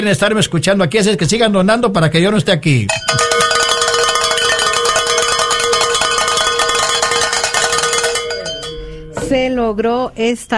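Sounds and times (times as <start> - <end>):
speech: 0.0 - 3.5, 9.3 - 10.5
church bells ringing: 3.1 - 9.2.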